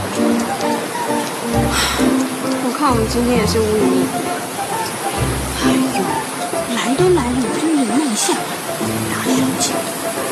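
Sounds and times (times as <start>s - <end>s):
rain falling: 0.0s - 10.2s
speech: 2.8s - 4.5s.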